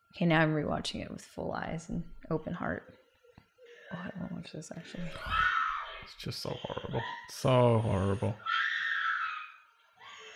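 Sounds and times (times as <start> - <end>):
speech: 0.2 - 3.0, 3.9 - 8.6
woman screaming in played video: 5.0 - 6.1, 8.4 - 10.3.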